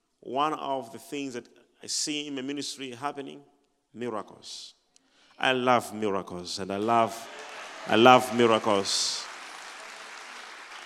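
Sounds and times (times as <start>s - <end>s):
speech: 0.2s - 4.8s, 5.4s - 9.3s
audience clapping: 6.8s - 10.8s.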